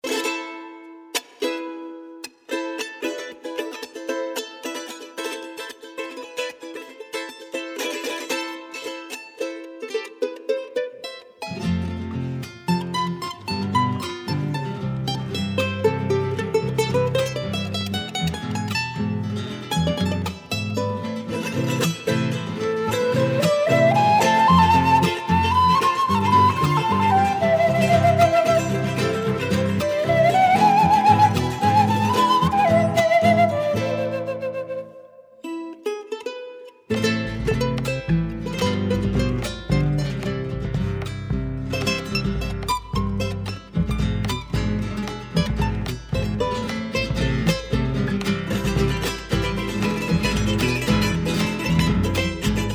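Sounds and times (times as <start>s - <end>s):
charango solo cueca: 0.0s - 52.7s.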